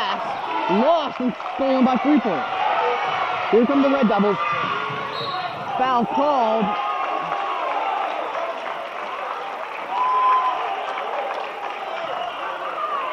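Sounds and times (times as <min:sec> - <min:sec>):
basketball crowd cheering and applauding: 0:00.0 - 0:13.1
speech: 0:00.1 - 0:02.6, 0:03.5 - 0:04.6, 0:05.2 - 0:06.9
thin whistle-like tone: 0:05.1 - 0:05.5.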